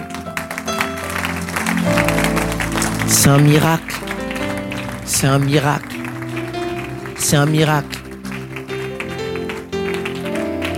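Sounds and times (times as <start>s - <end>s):
audience applause: 0.0s - 10.7s
sustained keyboard chords: 0.0s - 10.7s
speech: 3.1s - 4.1s, 5.1s - 6.0s, 7.2s - 8.0s.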